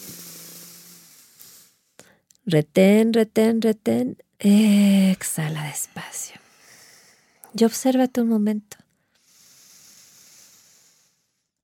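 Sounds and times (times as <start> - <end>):
deep inhale through the nose during a yoga breathing exercise for drivers: 0.0 - 2.3, 5.4 - 7.6, 9.0 - 11.6
speech: 2.5 - 6.4, 7.5 - 8.8.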